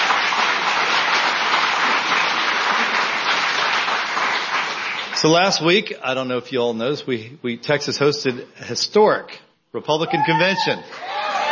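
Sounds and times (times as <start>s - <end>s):
audience applause: 0.0s - 5.5s, 11.0s - 11.5s
speech: 5.2s - 11.2s.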